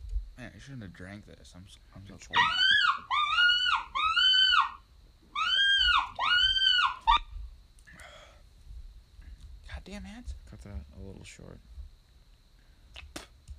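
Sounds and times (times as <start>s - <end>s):
speech: 0.6s - 3.2s, 9.8s - 11.8s
coyote greeting howl call from speaker: 2.2s - 7.4s.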